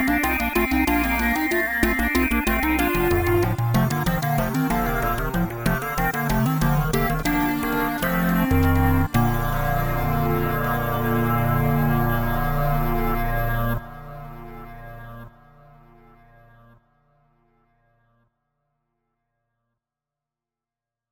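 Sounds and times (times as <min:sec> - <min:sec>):
synth fugue in B flat: 0:00.0 - 0:16.0.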